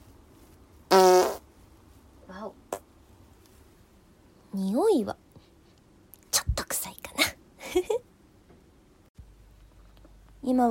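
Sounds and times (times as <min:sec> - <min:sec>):
fart: 0:00.9 - 0:01.5
speech: 0:04.6 - 0:05.2, 0:10.5 - 0:10.6.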